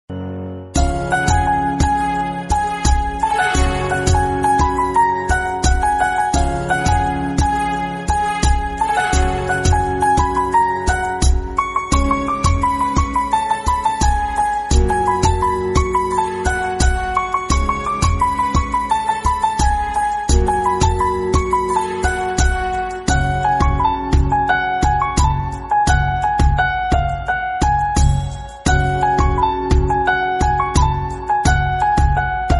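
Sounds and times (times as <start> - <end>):
background music ringtone: 0.1 - 32.5.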